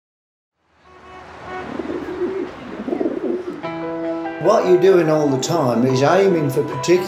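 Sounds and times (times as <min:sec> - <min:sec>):
domestic pigeon cooing: 0:01.5 - 0:03.7
speech: 0:04.4 - 0:07.0.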